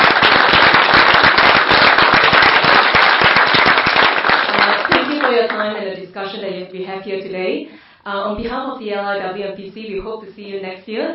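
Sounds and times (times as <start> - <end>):
audience applause: 0.0 - 5.6
speech: 6.7 - 11.1.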